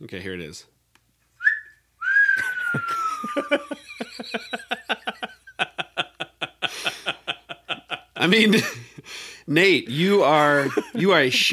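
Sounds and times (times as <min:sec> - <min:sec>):
speech: 0:00.0 - 0:00.8, 0:02.7 - 0:05.4, 0:08.2 - 0:08.8, 0:09.5 - 0:11.5
person whistling an imitation of birdsong: 0:01.4 - 0:03.4
laughter: 0:02.4 - 0:09.1, 0:10.3 - 0:11.5.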